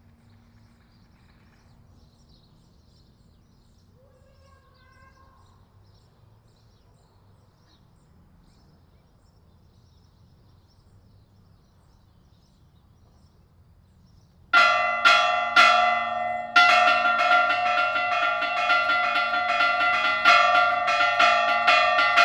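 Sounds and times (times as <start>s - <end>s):
bells ringing at LaCorrada: 14.6s - 22.2s.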